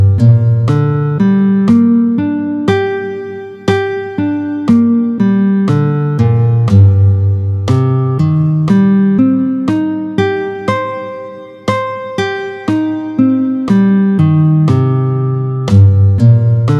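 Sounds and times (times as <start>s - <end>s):
minor arpeggios in G minor and C minor played with a pick: 0.0s - 16.7s.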